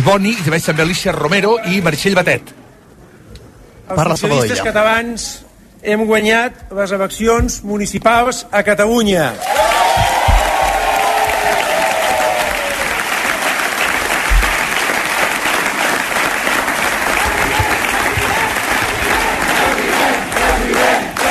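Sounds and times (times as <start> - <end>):
speech: 0.0 - 2.6, 3.9 - 10.1
large crowd applauding loudly: 9.4 - 21.3
crowd chanting president: 17.2 - 21.3.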